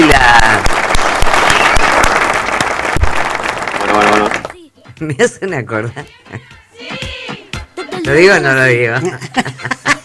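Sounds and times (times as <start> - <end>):
loud applause: 0.0 - 4.6
speech: 5.0 - 6.6, 8.1 - 10.0
laughter: 8.8 - 10.0.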